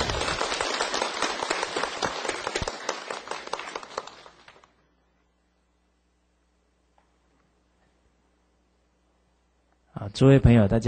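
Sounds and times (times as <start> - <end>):
warm audience applause: 0.0 - 4.7
speech: 10.1 - 10.8.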